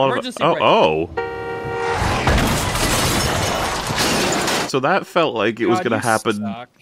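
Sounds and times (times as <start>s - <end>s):
speech: 0.0s - 1.3s, 4.7s - 6.8s
car crash after brake failure: 1.1s - 4.8s.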